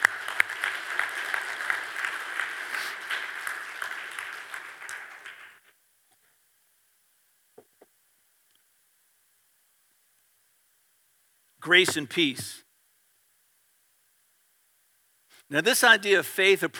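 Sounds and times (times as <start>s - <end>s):
audience applause: 0.0s - 5.6s
speech: 11.7s - 12.6s, 15.5s - 16.7s.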